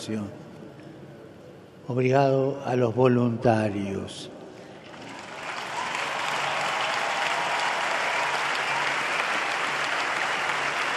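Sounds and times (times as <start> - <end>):
speech: 0.0 - 0.4, 1.9 - 4.4
audience applause for volunteers: 4.9 - 10.9.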